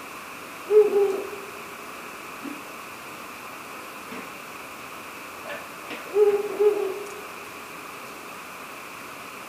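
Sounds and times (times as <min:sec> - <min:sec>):
Ural owl hooting: 0:00.7 - 0:01.7, 0:06.0 - 0:07.4.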